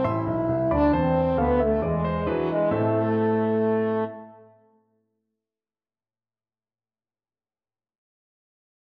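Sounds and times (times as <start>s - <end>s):
french horn: 0.0s - 4.6s.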